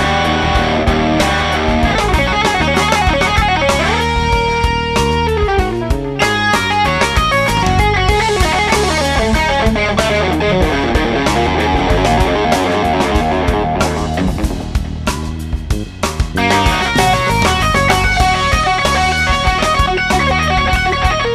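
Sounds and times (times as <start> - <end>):
rock guitar playing: 0.0 - 21.3.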